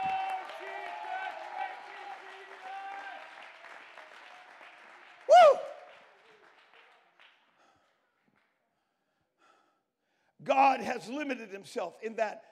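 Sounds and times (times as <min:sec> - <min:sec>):
audience shouting: 0:00.0 - 0:03.3
audience clapping: 0:00.0 - 0:08.6
speech: 0:10.5 - 0:12.4.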